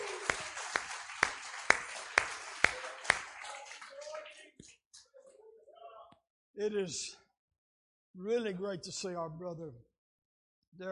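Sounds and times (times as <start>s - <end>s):
crowd noise: 0.0s - 4.7s
audience rhythmic clapping: 0.0s - 5.1s
speech: 6.6s - 7.2s, 8.2s - 9.9s, 10.7s - 10.9s.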